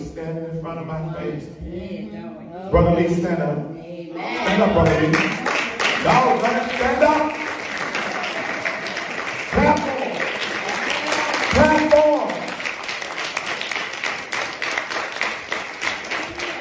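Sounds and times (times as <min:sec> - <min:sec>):
speech: 0:00.2 - 0:07.5
crowd clapping: 0:04.4 - 0:16.5.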